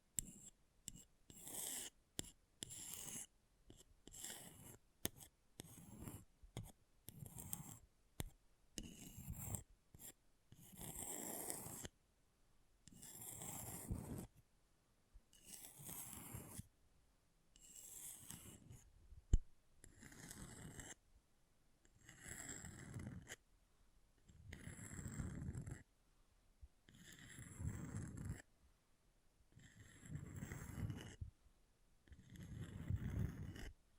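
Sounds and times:
scratching on an object: 0.2s - 7.8s, 8.8s - 11.9s, 12.9s - 14.4s, 15.3s - 16.7s, 17.6s - 18.9s, 19.9s - 21.0s, 22.0s - 23.4s, 24.5s - 25.9s, 26.9s - 28.5s, 29.7s - 31.3s, 32.1s - 33.7s.

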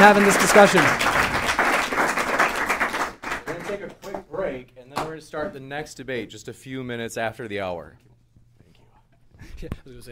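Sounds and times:
speech: 0.0s - 1.0s, 5.3s - 8.1s, 9.4s - 10.1s
round of applause: 0.0s - 4.3s.

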